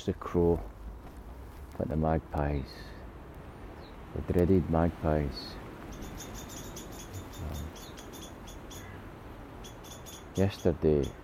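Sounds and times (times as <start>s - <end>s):
speech: 0.0s - 0.7s, 1.8s - 2.9s, 4.1s - 5.6s, 10.4s - 11.2s
jackdaw calling: 5.6s - 11.2s.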